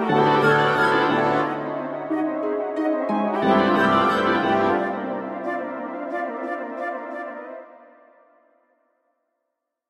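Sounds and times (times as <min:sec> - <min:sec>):
wood and brass: 0:00.0 - 0:02.4, 0:03.3 - 0:07.1.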